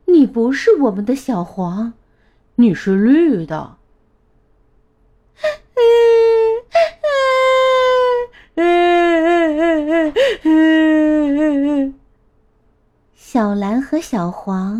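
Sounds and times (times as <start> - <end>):
speech: 0.2 - 2.0, 2.6 - 3.8, 13.3 - 14.7
person imitating children crying: 5.4 - 12.0.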